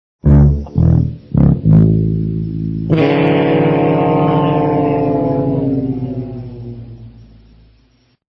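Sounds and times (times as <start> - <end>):
horn: 0.2 - 6.6.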